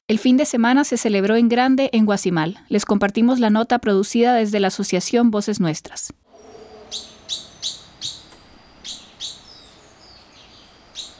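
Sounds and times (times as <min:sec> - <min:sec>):
speech: 0:00.1 - 0:07.8
toucans and hummingbirds chirping in riverside forest: 0:06.3 - 0:11.1.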